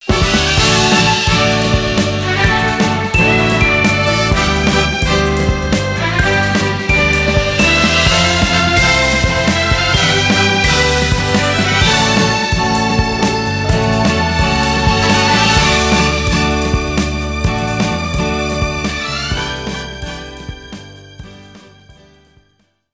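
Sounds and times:
race win victory jingle: 0.0s - 21.2s.

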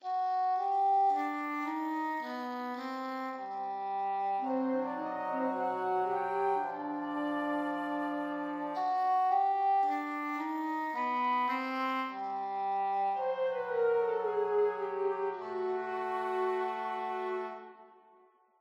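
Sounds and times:
string melody: 0.0s - 18.3s.

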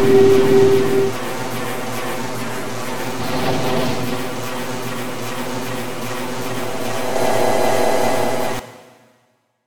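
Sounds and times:
ambient storm: 0.0s - 1.5s, 2.4s - 8.6s.

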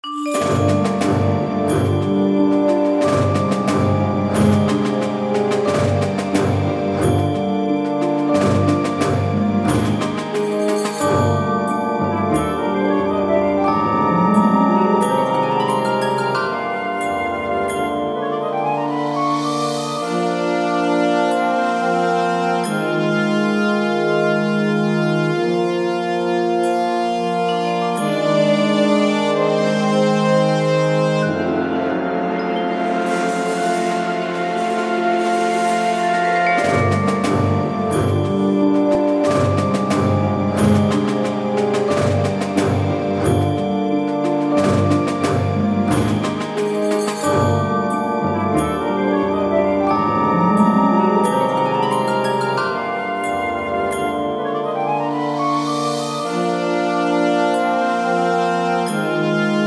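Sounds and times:
tension music: 0.0s - 59.6s.

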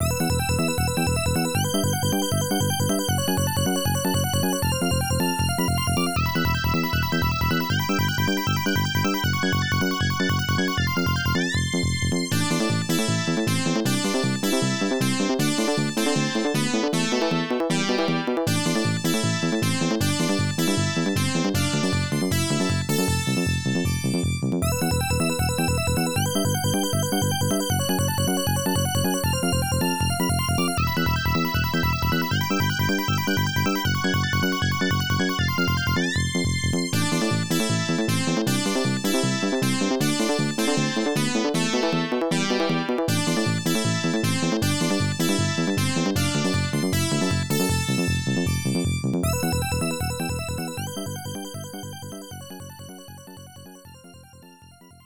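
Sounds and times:
unused background music: 0.0s - 55.0s.

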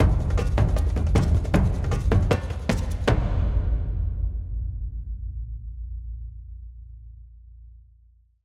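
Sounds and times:
percussion end tag: 0.0s - 5.0s.

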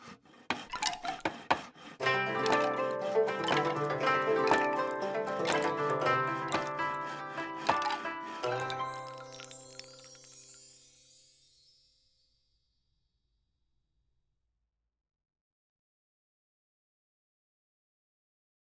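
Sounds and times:
construction jingle: 2.0s - 12.6s.

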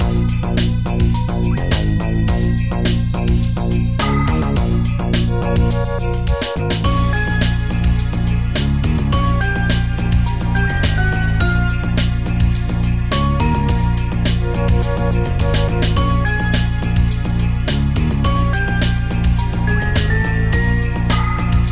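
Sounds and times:
base music loop: 0.0s - 21.7s.

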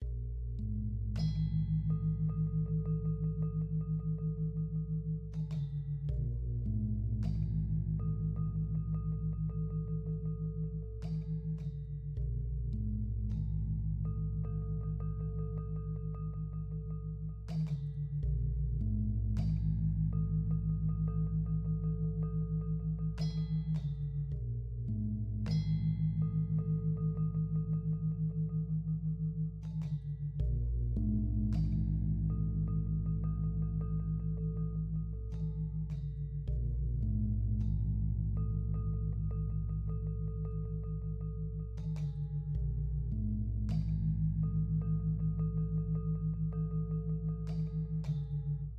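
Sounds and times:
desert music layer: 0.0s - 48.7s.

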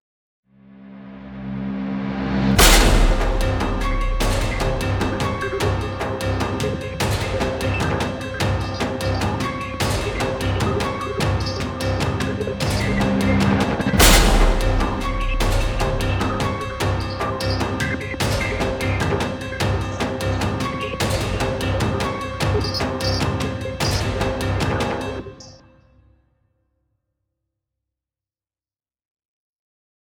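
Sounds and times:
coastal boss battle music: 2.5s - 25.4s.

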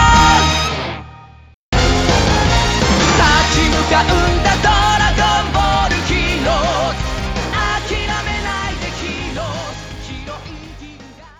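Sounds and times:
background music loop: 1.9s - 11.0s.

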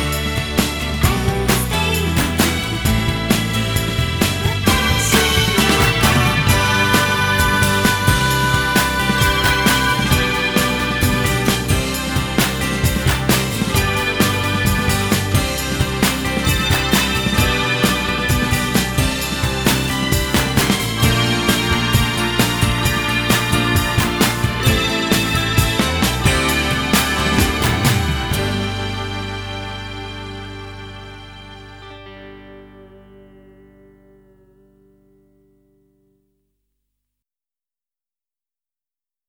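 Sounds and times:
karaoke singing: 0.0s - 29.3s.

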